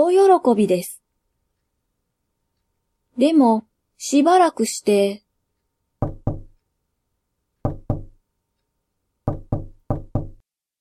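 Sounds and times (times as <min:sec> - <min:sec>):
speech: 0:00.0 - 0:01.0, 0:03.2 - 0:05.2
knocking on a wooden door: 0:06.0 - 0:06.6, 0:07.6 - 0:08.2, 0:09.2 - 0:10.4.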